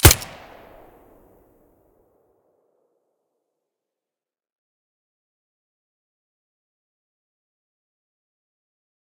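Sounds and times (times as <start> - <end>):
Five-seveN pistol shot with silencer: 0.0 - 0.9.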